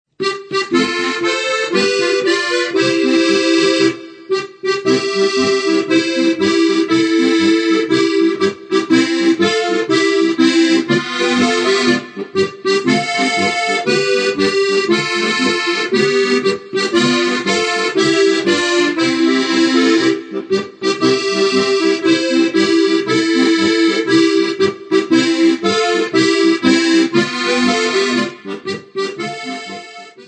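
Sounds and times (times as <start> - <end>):
polka music: 0.2 - 30.2.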